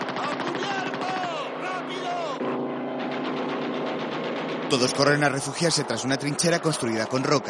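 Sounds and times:
aircraft strafing gunfire in the war film Kelly's Heroes: 0:00.0 - 0:01.6, 0:02.8 - 0:05.4
aircraft droning roar in the war film Kelly's Heroes: 0:00.0 - 0:07.4
speech: 0:04.7 - 0:07.4.

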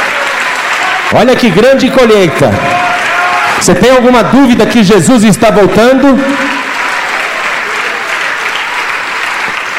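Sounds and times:
church audience applauding: 0:00.0 - 0:09.7
speech: 0:01.1 - 0:02.9, 0:03.6 - 0:06.5.

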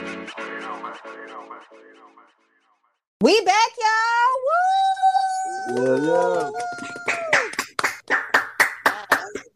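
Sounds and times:
speech: 0:03.2 - 0:04.8, 0:05.7 - 0:06.8
voices whooping and cheering: 0:04.4 - 0:07.6
hand claps: 0:05.6 - 0:09.5.

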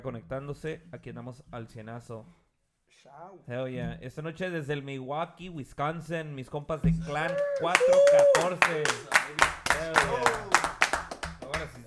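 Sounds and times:
speech: 0:00.0 - 0:10.8
applause: 0:07.1 - 0:11.8.

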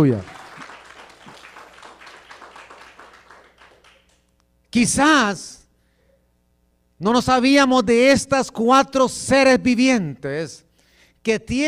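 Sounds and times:
speech: 0:00.0 - 0:00.3, 0:04.8 - 0:05.6, 0:07.0 - 0:10.6, 0:11.2 - 0:11.6
crowd applause: 0:00.0 - 0:04.2.

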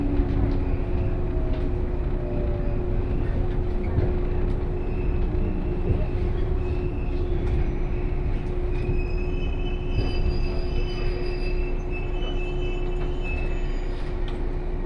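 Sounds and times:
Kosei Line 117 series local train rumbling from Kyoto toward Ono: 0:00.0 - 0:14.8
faint high train wheel squeals: 0:04.7 - 0:14.2.

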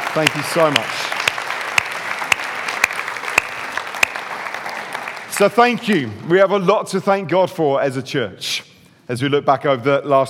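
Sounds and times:
audience applause: 0:00.0 - 0:06.4
speech: 0:00.2 - 0:01.1, 0:05.4 - 0:10.2.

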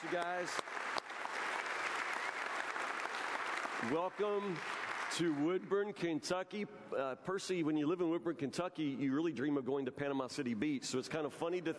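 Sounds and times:
speech: 0:00.0 - 0:01.0, 0:03.8 - 0:11.7
audience applauding and cheering a welcome: 0:00.0 - 0:05.5.

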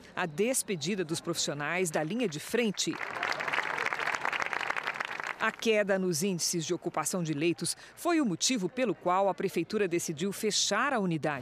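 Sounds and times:
speech: 0:00.2 - 0:03.2, 0:05.4 - 0:11.4
round of applause at hospital: 0:02.8 - 0:05.5.

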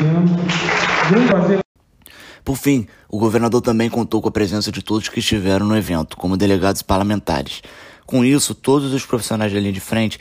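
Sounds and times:
loud dense audience applause: 0:00.0 - 0:01.6
speech: 0:01.1 - 0:01.6, 0:02.4 - 0:10.1.

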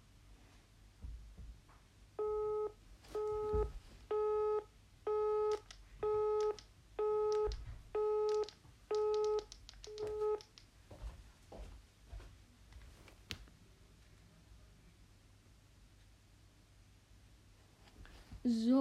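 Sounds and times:
telephone busy tone after dropped call: 0:02.2 - 0:10.4.

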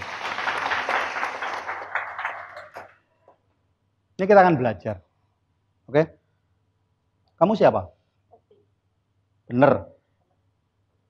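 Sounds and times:
group hand clapping: 0:00.0 - 0:03.1
speech: 0:04.2 - 0:05.1, 0:05.9 - 0:06.2, 0:07.4 - 0:08.0, 0:09.5 - 0:09.9.

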